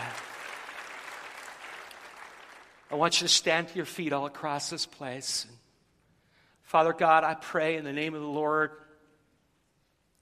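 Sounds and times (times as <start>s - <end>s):
audience clapping: 0.0s - 3.3s
speech: 2.9s - 5.6s, 6.7s - 8.8s.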